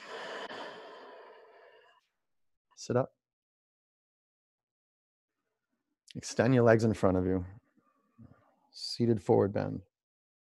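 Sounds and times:
deep breath out during a yoga exercise: 0.0 - 1.9
speech: 2.8 - 3.2, 6.2 - 7.6, 8.8 - 9.9.

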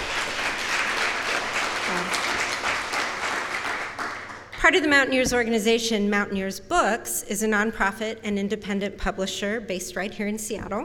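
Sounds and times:
audience clapping: 0.0 - 4.6
speech: 4.7 - 10.8.

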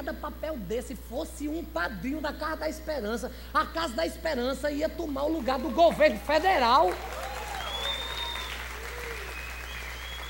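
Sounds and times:
speech: 0.1 - 7.3
steady applause from a sizable audience: 5.6 - 10.2
faint whistles: 7.6 - 10.2.

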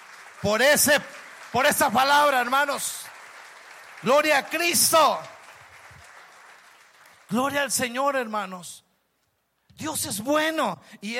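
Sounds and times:
applause: 0.0 - 8.5
speech: 0.4 - 3.1, 4.0 - 5.3, 7.3 - 8.8, 9.8 - 11.1.

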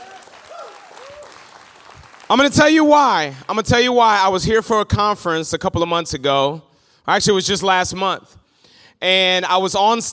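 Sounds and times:
audience clapping: 0.0 - 3.7
speech: 2.3 - 8.4, 9.0 - 10.1.

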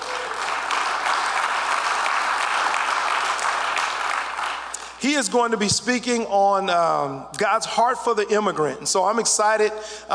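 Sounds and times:
audience hand clapping: 0.0 - 5.0
speech: 5.0 - 10.1.

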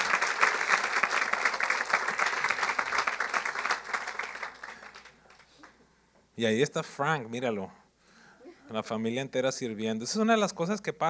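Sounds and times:
audience applause: 0.0 - 5.8
speech: 6.4 - 7.8, 8.7 - 11.0.

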